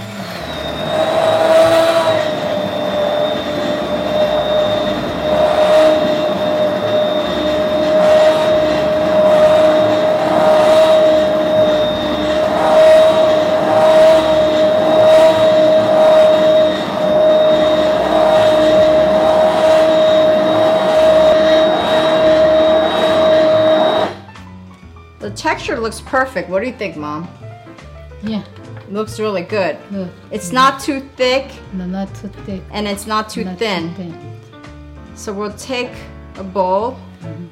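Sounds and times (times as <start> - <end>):
hand blender blending porridge: 0.0 - 24.3
speech: 25.9 - 27.4, 28.2 - 34.2, 35.2 - 37.0.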